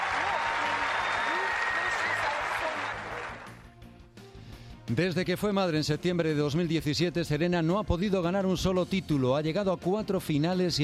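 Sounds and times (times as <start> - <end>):
tennis crowd applauding and cheering after a final: 0.0 - 3.8
speech: 4.9 - 10.8.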